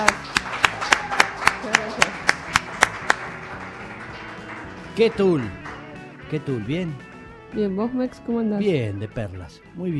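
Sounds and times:
audience applause: 0.0 - 7.0
speech: 5.0 - 5.6, 6.3 - 9.9.

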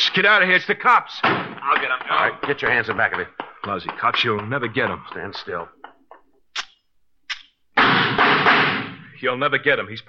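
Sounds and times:
speech: 0.2 - 5.8, 9.2 - 10.0
gunshots: 1.2 - 1.9, 7.8 - 9.1.

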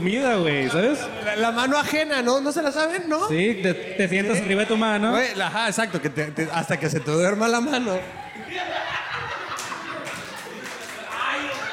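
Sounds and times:
speech: 0.0 - 8.9
audience laughter: 8.0 - 11.2
audience applause: 9.5 - 11.7.

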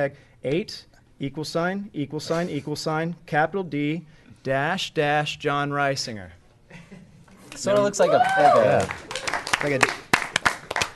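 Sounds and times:
speech: 0.0 - 6.9, 7.6 - 10.0
weak sparse pity claps from a small group: 8.4 - 10.9.

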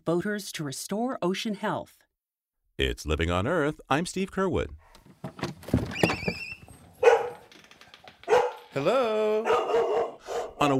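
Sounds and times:
speech: 0.0 - 2.0, 2.8 - 5.5, 8.7 - 9.6
border collie barking: 7.0 - 7.5, 8.2 - 8.8, 9.4 - 10.7.

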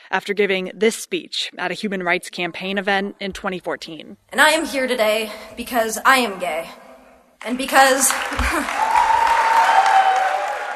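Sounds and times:
speech: 0.1 - 6.8, 7.4 - 9.0
crowd applause and cheering for a standing ovation at a human rights campaign event: 7.6 - 10.7.

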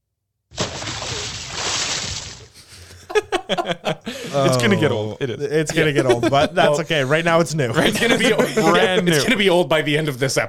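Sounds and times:
splash sound effect: 0.5 - 2.8
laughter: 2.6 - 9.6
speech: 3.5 - 10.4.

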